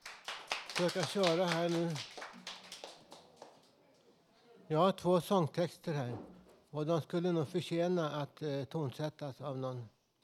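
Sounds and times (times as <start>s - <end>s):
applause: 0.0s - 3.8s
speech: 0.8s - 2.4s, 4.7s - 10.0s.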